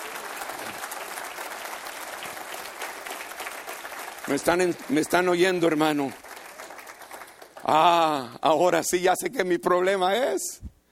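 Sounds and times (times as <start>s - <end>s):
audience applauding: 0.0s - 8.3s
speech: 4.2s - 6.2s, 7.7s - 10.7s.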